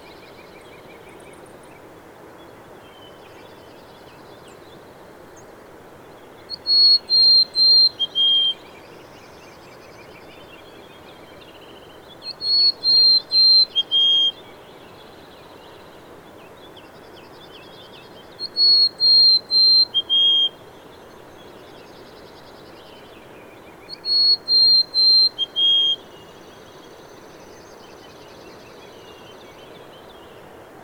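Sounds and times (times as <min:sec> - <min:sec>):
bird whistling: 0:06.5 - 0:08.6, 0:12.3 - 0:14.4, 0:18.4 - 0:20.6, 0:23.9 - 0:26.0.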